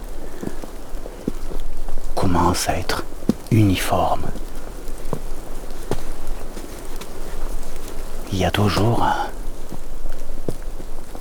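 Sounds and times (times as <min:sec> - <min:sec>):
wind: 0:00.0 - 0:11.1
speech: 0:02.3 - 0:04.4, 0:08.3 - 0:09.4.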